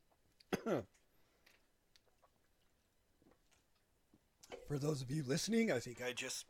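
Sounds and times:
person coughing and clearing the throat after choking on saliva: 0.5 - 1.0
speech: 0.6 - 1.0, 4.7 - 6.4.

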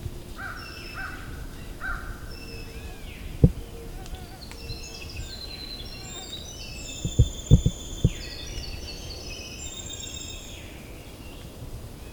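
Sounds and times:
birds whistling and chirping at Valens Lake: 0.4 - 11.4
sharp knocks: 7.0 - 8.2
low rumble: 7.0 - 8.4.

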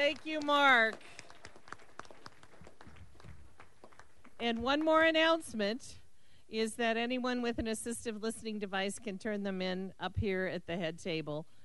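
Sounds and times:
speech: 0.0 - 1.2, 4.4 - 11.6
crowd applauding: 0.0 - 4.5.

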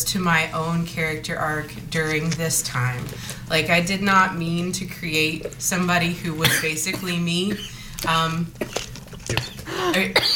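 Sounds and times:
speech: 0.0 - 10.3
person coughing: 6.4 - 7.9, 8.6 - 10.3.

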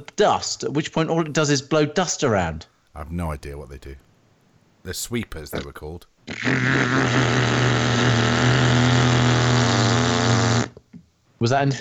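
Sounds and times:
speech: 0.0 - 4.1, 4.8 - 8.2, 11.4 - 11.8
petrol strimmer engine buzzing: 6.3 - 10.8.

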